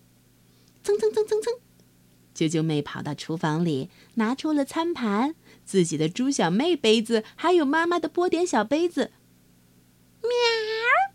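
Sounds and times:
speech: 0.9 - 1.7, 2.4 - 9.2
person imitating a cat meowing: 10.2 - 11.1.

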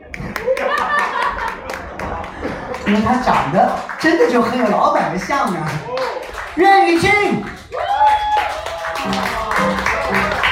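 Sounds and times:
laughter: 0.0 - 3.3
audience applause: 0.0 - 10.5
speech: 2.9 - 7.6.

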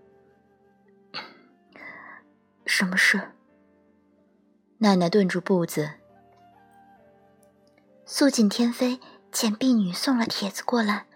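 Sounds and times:
suppressed cough: 1.2 - 1.5
speech: 2.7 - 3.4, 4.8 - 6.0, 8.1 - 11.1.

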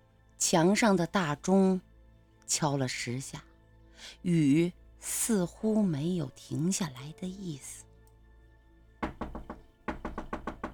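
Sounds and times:
speech: 0.4 - 1.9, 2.5 - 7.8
rapid knocking on a door: 9.0 - 10.7.

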